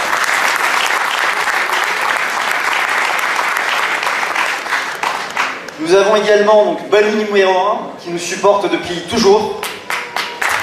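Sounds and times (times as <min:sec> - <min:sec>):
audience applause: 0:00.0 - 0:05.8, 0:09.5 - 0:10.6
speech: 0:05.9 - 0:09.6.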